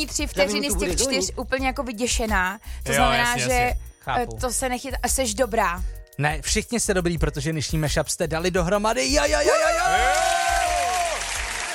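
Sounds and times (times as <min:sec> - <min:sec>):
speech: 0:00.0 - 0:10.3
pre-recorded crowd applause and cheering: 0:09.4 - 0:11.7.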